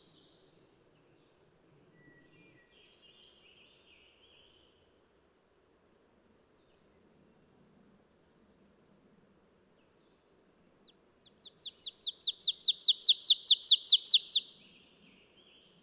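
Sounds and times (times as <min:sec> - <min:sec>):
bird singing high downslurred chips: 0:11.7 - 0:14.5.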